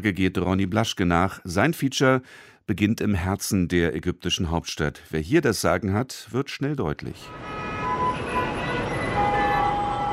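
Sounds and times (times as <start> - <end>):
speech: 0.0 - 7.6
dense car traffic in central Cairo: 7.1 - 10.1
car horns tooting: 7.3 - 10.1.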